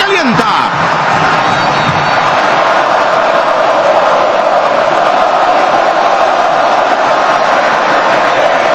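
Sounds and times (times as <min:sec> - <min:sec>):
Colombian football fans roaring in a stadium during a match against Ghana: 0:00.0 - 0:08.7.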